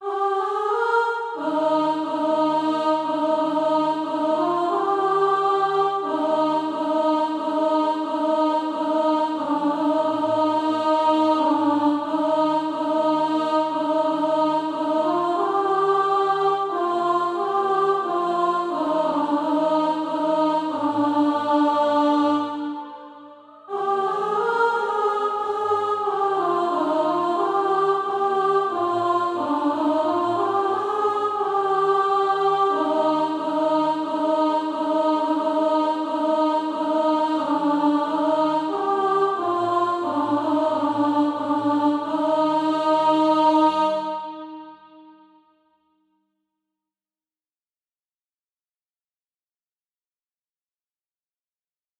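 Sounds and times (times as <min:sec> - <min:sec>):
alto voice singing SATB practice music: 0:00.0 - 0:45.4.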